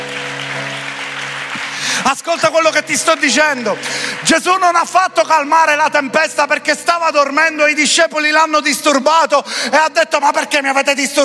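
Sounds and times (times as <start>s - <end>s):
crowd clapping: 0.0s - 6.6s
speech: 2.0s - 11.2s.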